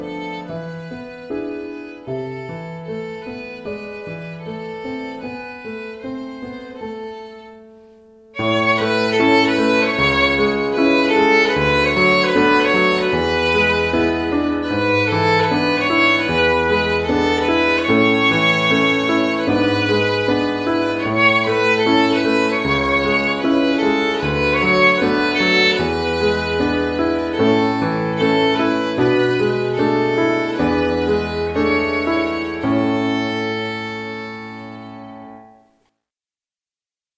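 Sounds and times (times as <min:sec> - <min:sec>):
violin: 0:00.0 - 0:35.7
piano: 0:00.0 - 0:35.9.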